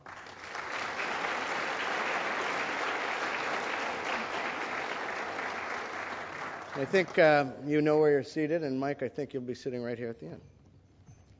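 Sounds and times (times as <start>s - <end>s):
audience applauding a guest at a panel conversation: 0.0s - 7.5s
speech: 6.8s - 10.5s.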